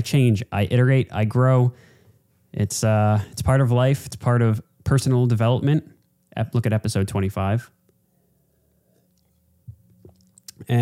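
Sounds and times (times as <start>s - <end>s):
speech: 0.0s - 1.9s, 2.5s - 7.8s
swallowing close to microphone: 9.0s - 10.7s.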